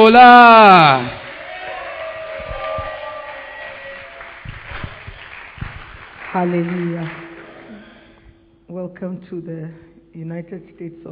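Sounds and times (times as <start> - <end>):
speech: 0.0 - 1.2, 6.3 - 7.2, 8.7 - 11.1
church congregation cheering and shouting for joy: 0.0 - 5.1.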